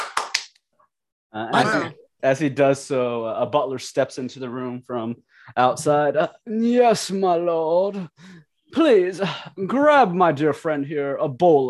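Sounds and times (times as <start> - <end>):
man clapping hands: 0.0 - 0.6
speech: 1.3 - 11.6.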